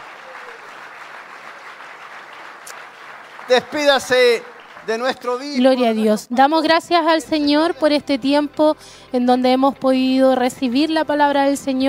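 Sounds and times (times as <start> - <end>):
applause: 0.0 - 5.8
speech: 3.5 - 11.8.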